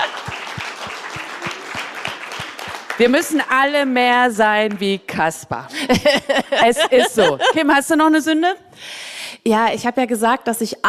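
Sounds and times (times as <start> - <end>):
laughter: 0.0 - 2.1, 5.7 - 7.8
live show audience applauding: 0.0 - 4.9
speech: 3.0 - 8.9, 9.5 - 10.8.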